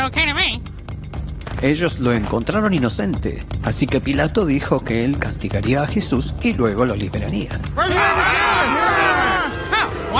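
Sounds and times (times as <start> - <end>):
speech: 0.0 - 0.8, 1.6 - 8.8
crowd shouting: 7.8 - 10.1.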